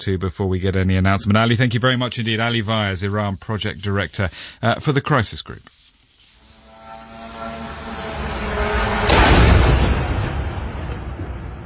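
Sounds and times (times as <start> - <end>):
speech: 0.0 - 5.8
Russian drone engine whine: 6.4 - 11.6
Russian drone crashing into apartment block: 7.0 - 11.6.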